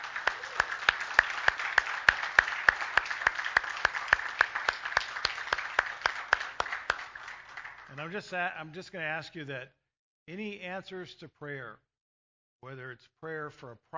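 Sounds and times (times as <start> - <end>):
audience hand clapping: 0.0 - 8.4
speech: 8.0 - 11.9, 12.6 - 13.9.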